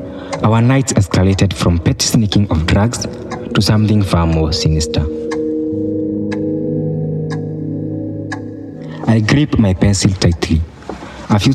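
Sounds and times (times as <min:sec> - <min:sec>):
clock ticking: 0:00.0 - 0:11.5
speech: 0:00.4 - 0:05.2, 0:09.1 - 0:10.7, 0:11.3 - 0:11.5.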